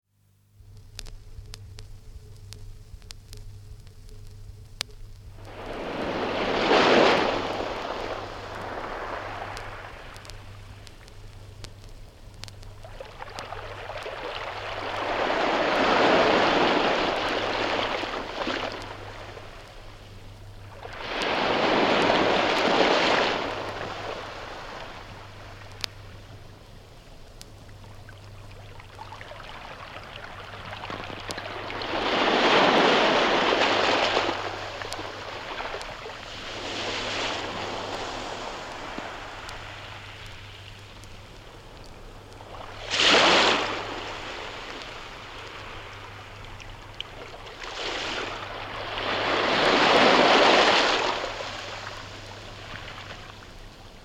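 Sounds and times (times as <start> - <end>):
heavy waves breaking on rocks from 78 disc: 5.4 - 10.3, 13.1 - 19.7, 20.8 - 25.8, 31.2 - 40.3, 42.6 - 46.0, 47.5 - 53.2.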